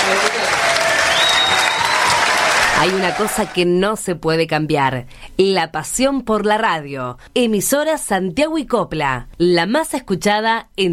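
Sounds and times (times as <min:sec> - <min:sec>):
audience applause: 0:00.0 - 0:03.6
speech: 0:02.8 - 0:10.9.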